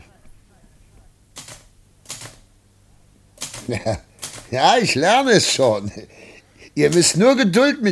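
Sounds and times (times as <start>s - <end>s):
low steady hum: 0.0s - 7.8s
typewriter keystrokes printing letters on paper: 1.4s - 2.4s, 3.4s - 4.7s
speech: 3.7s - 7.8s.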